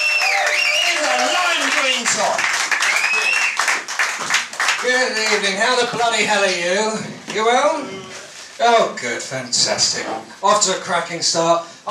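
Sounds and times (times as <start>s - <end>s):
audience applause: 0.0s - 5.6s
speech: 5.0s - 8.0s, 8.6s - 11.8s.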